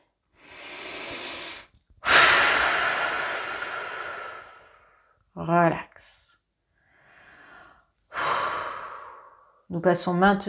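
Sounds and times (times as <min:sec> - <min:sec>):
slow exhalation during a guided breathing relaxation exercise: 0:00.4 - 0:05.1, 0:07.0 - 0:09.6
speech: 0:05.4 - 0:06.2, 0:09.7 - 0:10.4.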